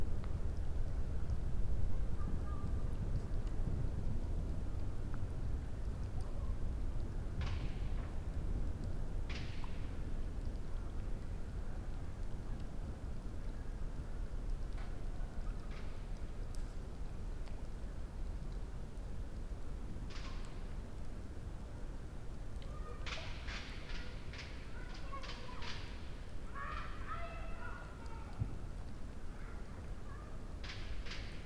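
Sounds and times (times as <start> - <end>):
campfire crackling: 0.0 - 31.4
raindrops: 0.0 - 31.4
child: 1.9 - 3.0, 6.1 - 6.8, 22.6 - 30.8.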